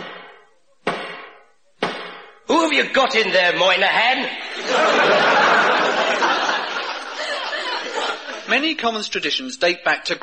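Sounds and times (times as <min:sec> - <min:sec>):
Black Rod banging a 3-foot wooden pole against the locked doors: 0:00.0 - 0:02.5
speech: 0:02.5 - 0:05.4, 0:08.5 - 0:10.2
laughter: 0:04.4 - 0:08.6.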